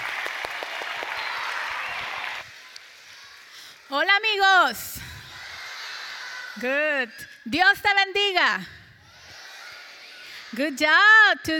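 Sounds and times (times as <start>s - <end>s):
crowd applauding: 0.0s - 3.5s
speech: 3.9s - 5.0s, 6.6s - 8.8s, 10.5s - 11.5s.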